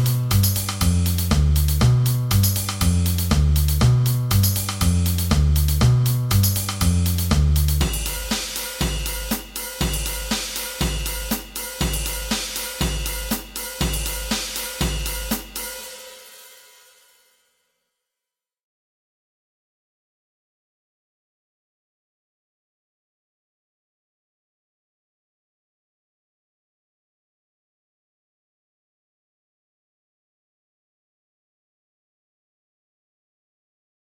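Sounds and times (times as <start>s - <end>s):
drums: 0.0s - 17.2s.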